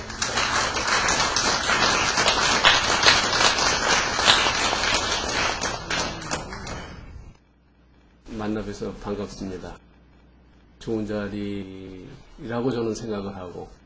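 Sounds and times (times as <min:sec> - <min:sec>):
audience applause: 0:00.0 - 0:07.0
speech: 0:08.5 - 0:09.9, 0:10.8 - 0:13.8.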